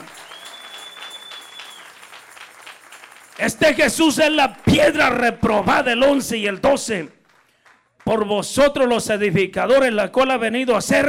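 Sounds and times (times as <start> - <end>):
audience applause: 0.0 - 5.2
speech: 3.4 - 7.2, 8.1 - 11.0.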